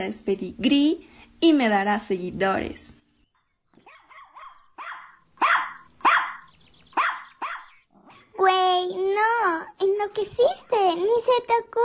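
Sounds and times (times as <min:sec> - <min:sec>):
speech: 0:00.0 - 0:03.0, 0:08.4 - 0:11.8
small dog barking: 0:03.8 - 0:07.8.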